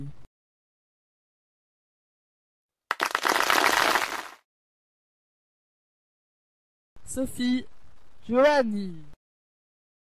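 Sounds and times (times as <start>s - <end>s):
audience applause: 2.9s - 4.4s
speech: 7.1s - 9.1s.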